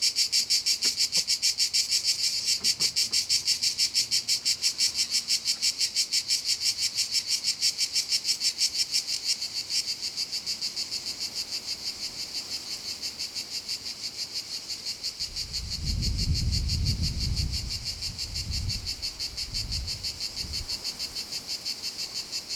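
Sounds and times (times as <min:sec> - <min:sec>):
cicadas in Castelvecchio di Rocca Liguria Italy: 0:00.0 - 0:22.5.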